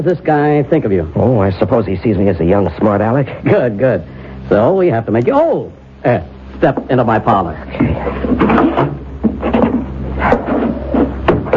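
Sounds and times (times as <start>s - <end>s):
speech: 0.0s - 9.6s
steady low hum: 0.0s - 11.5s
wooden door opening and closing: 7.8s - 11.5s.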